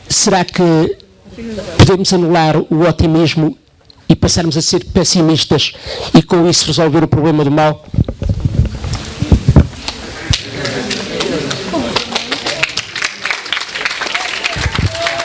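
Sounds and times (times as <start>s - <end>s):
speech: 0.1s - 8.4s
audience applause: 10.3s - 15.2s.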